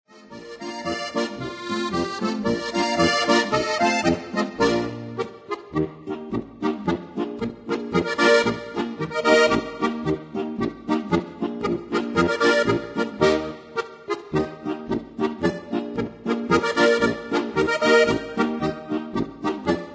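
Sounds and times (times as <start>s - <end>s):
polka music: 0.1s - 19.9s.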